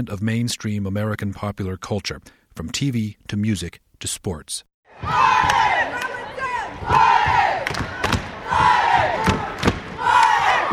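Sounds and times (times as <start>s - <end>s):
speech: 0.0s - 5.6s
basketball crowd war cries: 4.9s - 10.7s
hands clapping: 5.4s - 6.2s, 7.6s - 8.3s, 9.2s - 10.4s.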